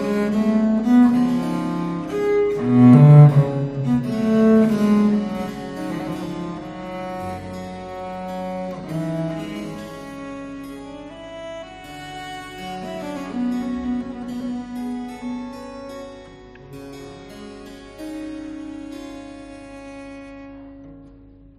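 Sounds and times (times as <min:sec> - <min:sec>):
viola da gamba sonata in G minor largo: 0:00.0 - 0:16.4.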